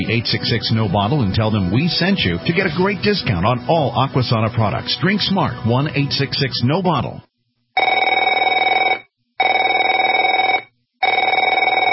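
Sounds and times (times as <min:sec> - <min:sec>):
speech: 0:00.0 - 0:07.3
telephone ringing: 0:07.8 - 0:11.9.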